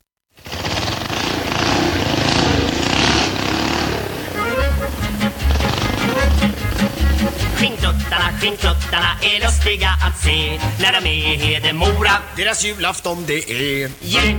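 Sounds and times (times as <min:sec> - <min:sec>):
motorcycle engines revving: 0:00.4 - 0:08.3
speech: 0:08.4 - 0:14.3.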